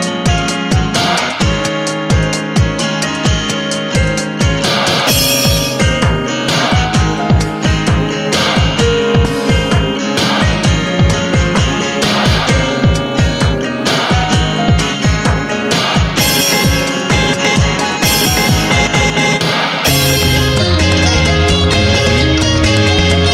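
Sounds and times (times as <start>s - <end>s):
background music melody at 130 BPM: 0.0s - 23.3s.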